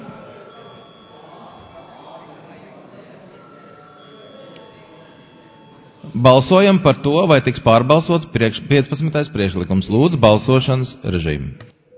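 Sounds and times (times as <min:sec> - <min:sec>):
bell calling parliament members to vote: 0:00.0 - 0:07.7
speech: 0:06.0 - 0:11.7.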